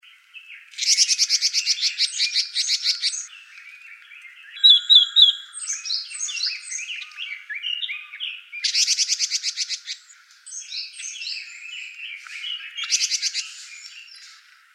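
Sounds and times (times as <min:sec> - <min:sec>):
red-billed leiothrix singing: 0:00.4 - 0:14.4.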